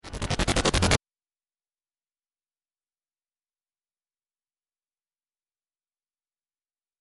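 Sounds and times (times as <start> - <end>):
helicopter blades: 0.0 - 1.0.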